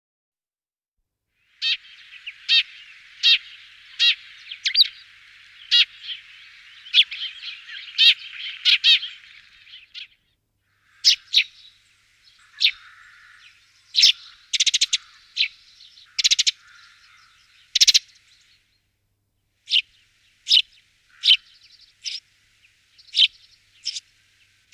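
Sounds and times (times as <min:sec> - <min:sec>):
bird song of sharp high chirps: 0:01.4 - 0:18.8, 0:19.6 - 0:24.7.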